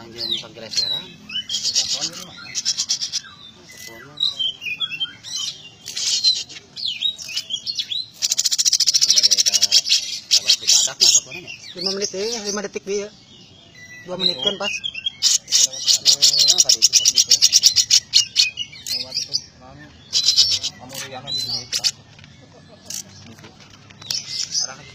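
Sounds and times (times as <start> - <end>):
small bird singing with whistled notes, buzzy trills and chattering: 0.0 - 24.9.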